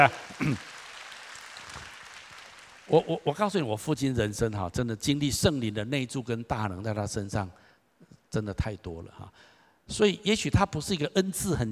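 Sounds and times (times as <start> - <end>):
speech: 0.0 - 0.7, 2.9 - 7.6, 8.3 - 11.7
audience applauding: 0.0 - 3.2.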